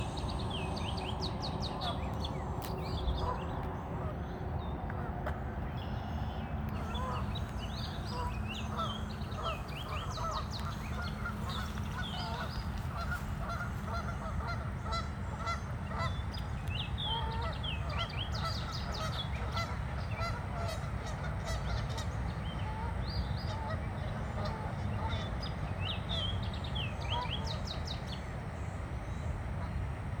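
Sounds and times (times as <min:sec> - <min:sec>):
birdsong in Oxmoor Valley: 0:00.0 - 0:30.0.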